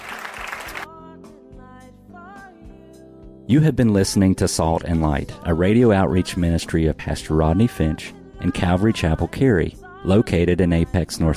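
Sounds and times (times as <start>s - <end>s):
audience clapping hands: 0.0s - 0.9s
soft sustained instrumental music: 0.8s - 11.3s
speech: 3.5s - 11.3s.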